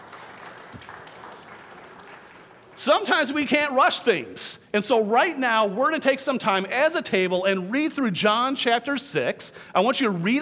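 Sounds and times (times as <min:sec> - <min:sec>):
crowd clapping: 0:00.0 - 0:03.6
speech: 0:02.8 - 0:10.3.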